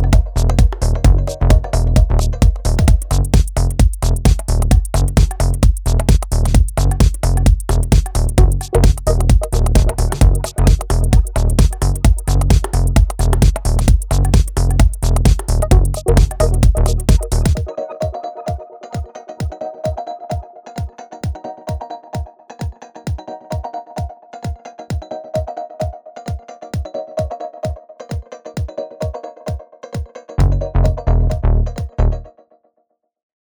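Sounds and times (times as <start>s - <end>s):
techno music: 0.0s - 22.8s, 30.4s - 32.1s.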